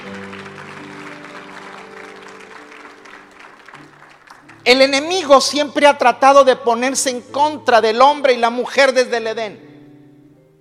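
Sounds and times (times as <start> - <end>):
audience clapping: 0.0 - 5.2
speech: 4.7 - 9.6.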